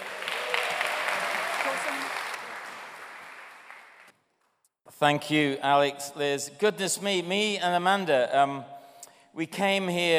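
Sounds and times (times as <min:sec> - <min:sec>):
audience applause welcoming a speaker to the stage: 0:00.0 - 0:04.1
speech: 0:05.0 - 0:08.8, 0:09.4 - 0:10.1.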